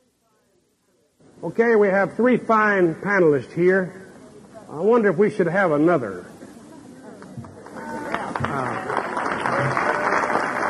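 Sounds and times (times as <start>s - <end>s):
murmur of voices: 0.0s - 10.6s
speech: 1.4s - 4.0s, 4.7s - 6.3s
audience clapping: 7.2s - 10.6s.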